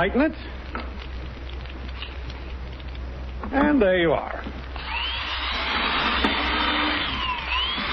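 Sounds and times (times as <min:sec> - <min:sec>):
speech: 0:00.0 - 0:00.8, 0:03.5 - 0:04.6
power drill drilling holes through a board: 0:04.8 - 0:07.9.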